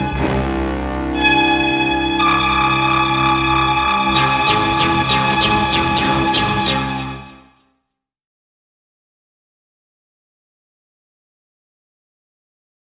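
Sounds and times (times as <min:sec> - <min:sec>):
instrumental theme music: 0:00.0 - 0:07.7.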